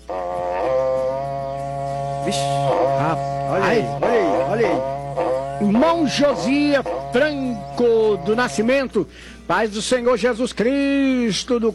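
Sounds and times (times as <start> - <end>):
berrante cattle horn being blown: 0.0 - 8.9
speech: 2.3 - 5.0, 5.6 - 11.7.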